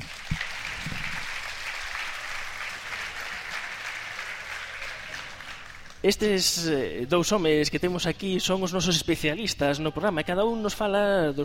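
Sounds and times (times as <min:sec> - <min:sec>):
audience applause: 0:00.0 - 0:06.0
speech: 0:06.0 - 0:11.4.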